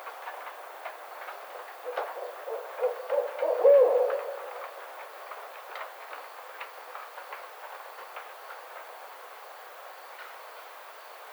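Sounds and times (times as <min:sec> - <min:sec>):
Barred owl hooting: 0:02.2 - 0:04.6.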